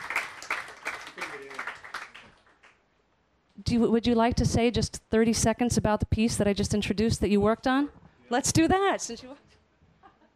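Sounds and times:
audience applause: 0:00.0 - 0:02.6
speech: 0:03.6 - 0:09.5.

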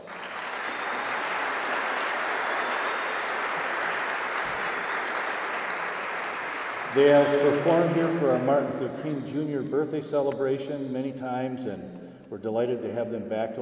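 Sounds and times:
audience applause: 0:00.0 - 0:08.5
speech: 0:06.9 - 0:13.5.

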